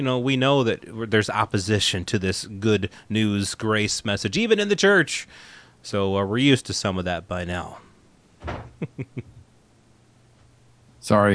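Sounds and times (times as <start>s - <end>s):
speech: 0.0s - 7.8s, 8.4s - 9.4s, 11.0s - 11.3s
latch knocks: 8.4s - 8.8s
door being shut: 8.4s - 8.9s.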